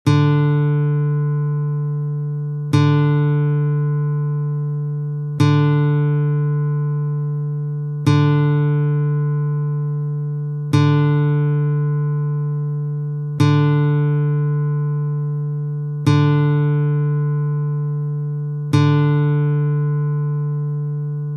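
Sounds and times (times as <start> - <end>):
classical guitar strings: 0.1 - 21.3.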